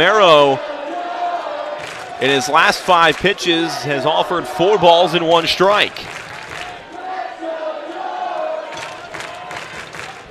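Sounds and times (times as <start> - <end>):
speech: 0.0 - 0.7, 2.2 - 6.2
shouted voices: 0.0 - 5.9, 6.6 - 9.7
ballpark crowd cheering: 0.0 - 10.2
rhythmic clapping: 1.8 - 2.2, 6.0 - 6.9, 8.7 - 10.2.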